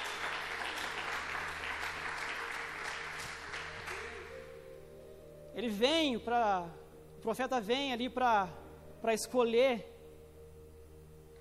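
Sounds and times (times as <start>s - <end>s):
audience applauding: 0.0s - 4.5s
speech: 5.6s - 9.9s.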